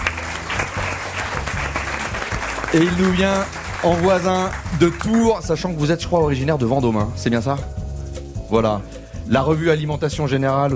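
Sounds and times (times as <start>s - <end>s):
audience applause at a show taping: 0.0s - 5.4s
speech: 2.7s - 7.8s, 8.5s - 10.7s.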